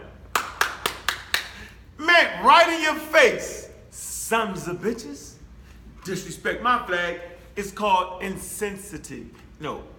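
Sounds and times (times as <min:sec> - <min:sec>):
hand claps: 0:00.3 - 0:01.7
speech: 0:02.2 - 0:03.6, 0:04.3 - 0:05.3, 0:06.0 - 0:09.9.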